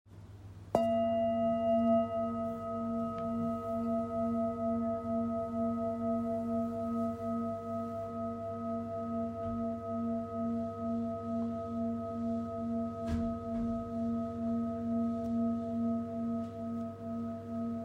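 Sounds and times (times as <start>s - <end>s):
singing bowl: 0.7s - 17.8s.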